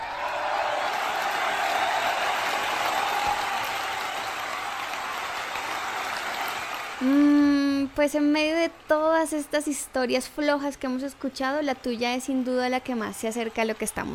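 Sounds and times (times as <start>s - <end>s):
audience applause: 0.0s - 7.2s
speech: 7.0s - 7.3s, 8.0s - 14.1s.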